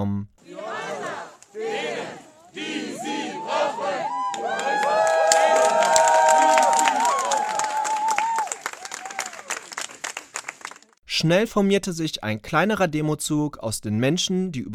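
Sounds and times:
crowd of supporters cheering: 0.4 - 11.0
speech: 11.2 - 14.7.

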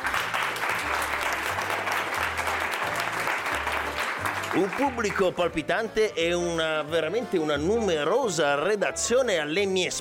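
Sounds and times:
lively audience applause: 0.0 - 5.4
speech: 4.6 - 9.9.

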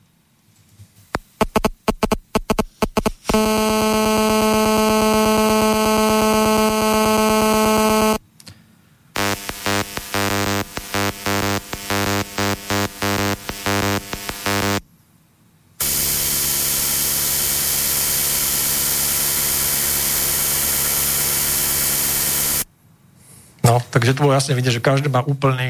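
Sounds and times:
GSM DECT and TETRA radio signal interference: 1.1 - 8.2, 9.2 - 14.8, 15.8 - 22.7
speech: 24.4 - 25.6.

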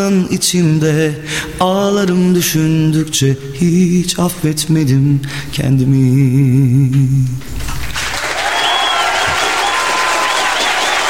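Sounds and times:
speech: 0.0 - 7.7
crowd applause: 7.8 - 11.0
faint cheers and whistles: 8.1 - 11.0.

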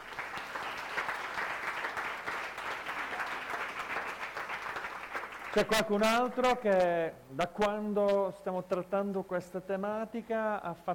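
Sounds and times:
audience applause: 0.0 - 5.8
speech: 5.5 - 10.9.

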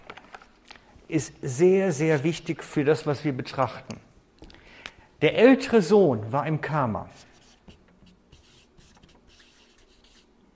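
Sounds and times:
speech: 1.1 - 4.0, 5.2 - 7.3
writing on a board: 7.2 - 10.5.

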